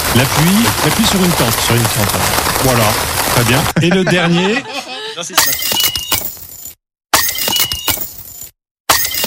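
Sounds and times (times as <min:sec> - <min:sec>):
speech: 0:00.2 - 0:05.6
laughter: 0:03.6 - 0:05.4
champagne glass breaking: 0:05.4 - 0:09.2.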